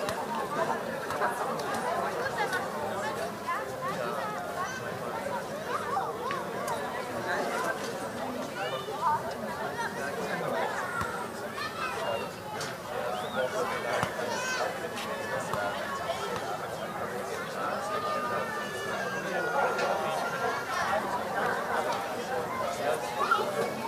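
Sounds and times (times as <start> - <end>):
children chattering at play on a summer evening in Berlin: 0.0 - 23.8
children shouting and calling at play: 10.6 - 12.3, 14.2 - 14.7, 17.8 - 21.6, 22.6 - 23.8.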